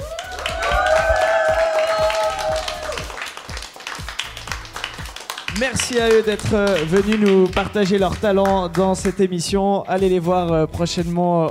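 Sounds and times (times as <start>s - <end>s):
sustained high-pitched cheer: 0.0s - 4.4s
audience applause: 0.0s - 8.8s
speech: 5.6s - 11.5s.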